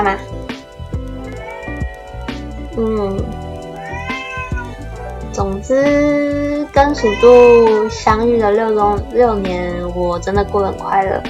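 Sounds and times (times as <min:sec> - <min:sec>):
speech: 0:00.0 - 0:00.6, 0:02.8 - 0:03.5, 0:05.4 - 0:11.2
cat meowing: 0:01.2 - 0:02.2, 0:03.7 - 0:04.8, 0:06.7 - 0:08.2.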